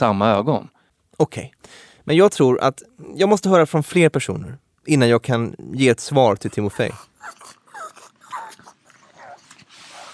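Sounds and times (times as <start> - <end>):
speech: 0.0 - 7.1
soft hiss: 0.0 - 10.1
pug making pig-like grunts and squeaks: 6.4 - 10.1.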